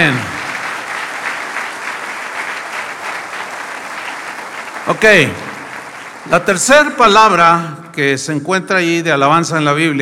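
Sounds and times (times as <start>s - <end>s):
speech: 0.0s - 0.3s, 4.9s - 5.5s, 6.2s - 9.9s
audience applauding: 0.0s - 7.7s.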